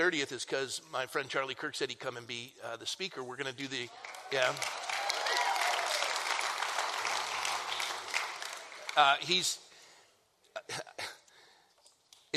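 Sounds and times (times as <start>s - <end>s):
speech: 0.0s - 5.0s, 9.0s - 9.6s, 10.6s - 10.9s
crowd applauding: 3.9s - 9.4s.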